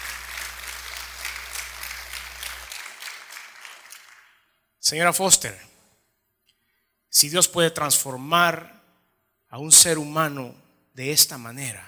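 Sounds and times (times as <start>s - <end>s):
audience applause: 0.0s - 4.4s
speech: 4.9s - 5.7s, 7.2s - 8.8s, 9.5s - 11.8s.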